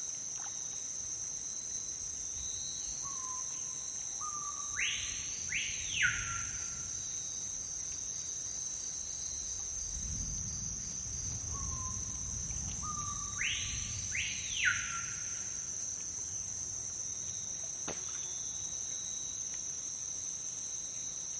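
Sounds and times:
Amazon rainforest insects droning at dusk: 0.0 - 21.3
low rumble: 9.6 - 14.6.

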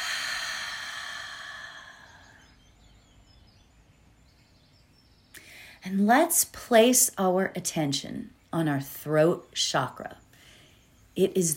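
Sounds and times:
deep breath during guided meditation: 0.0 - 2.6
speech: 5.8 - 10.2, 11.2 - 11.5.

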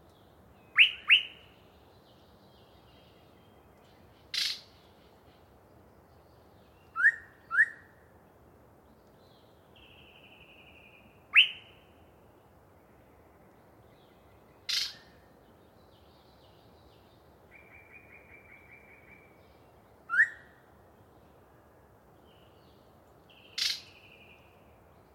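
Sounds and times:
yellow-breasted chat singing with whistles, clicks and buzzy rattle: 0.7 - 1.4, 4.3 - 4.7, 6.8 - 7.8, 11.3 - 11.7, 14.7 - 15.0, 20.1 - 20.4, 23.5 - 24.5.

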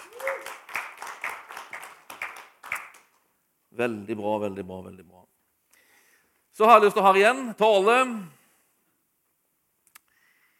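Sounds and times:
audience clapping: 0.0 - 3.2
speech: 3.8 - 5.3, 6.6 - 8.4.

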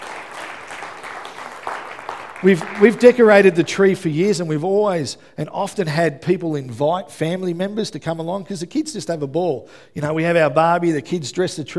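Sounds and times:
audience clapping: 0.0 - 3.9
speech: 2.4 - 11.7.

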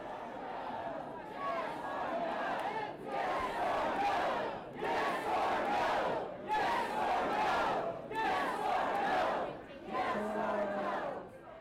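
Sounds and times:
crowd chanting: 0.0 - 11.6.

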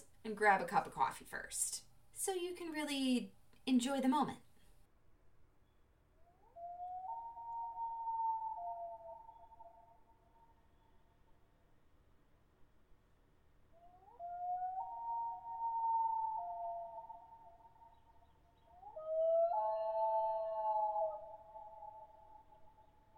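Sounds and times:
speech: 0.2 - 4.5
loon calls over the Boundary Waters: 6.6 - 10.0, 14.0 - 18.0, 18.7 - 22.5.

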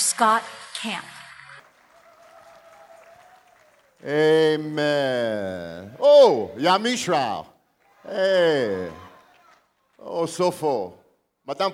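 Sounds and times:
audience applause welcoming a guest: 0.0 - 6.0, 7.8 - 10.1
speech: 0.2 - 1.2, 4.0 - 9.0, 10.0 - 11.7.

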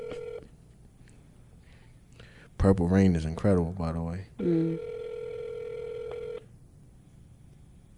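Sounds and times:
phone call tone: 0.0 - 0.5, 4.4 - 6.5
speech: 2.6 - 5.0.

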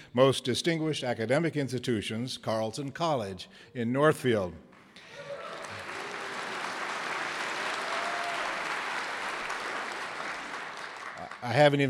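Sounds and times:
speech: 0.1 - 4.7, 11.4 - 11.8
crowd applause: 5.0 - 11.8.

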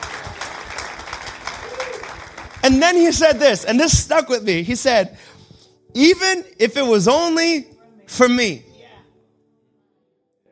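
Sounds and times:
audience applause: 0.0 - 3.8
speech: 2.6 - 5.3, 6.0 - 8.7.

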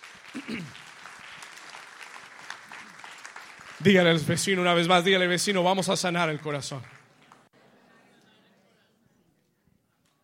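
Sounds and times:
audience applause: 0.0 - 7.5
speech: 0.4 - 0.8, 3.8 - 7.0.

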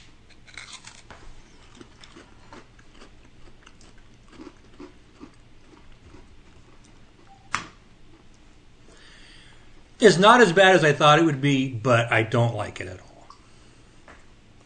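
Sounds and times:
biting into a coffee-flavored snack: 0.2 - 7.0
speech: 10.0 - 13.1.

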